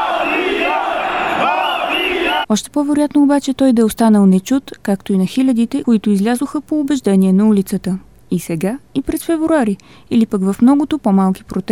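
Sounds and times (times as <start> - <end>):
protest crowd shouting: 0.0 - 2.5
speech: 2.5 - 11.7.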